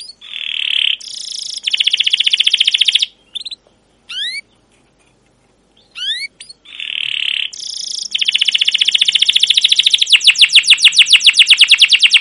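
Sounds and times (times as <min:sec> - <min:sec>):
canary chirping and trilling: 0:00.0 - 0:04.7, 0:05.7 - 0:12.1.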